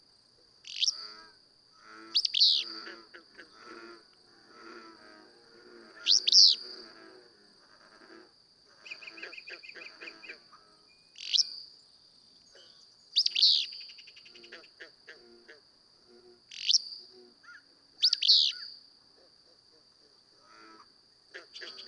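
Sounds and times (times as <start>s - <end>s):
Willow flycatcher buzzy song: 1.9s - 18.8s.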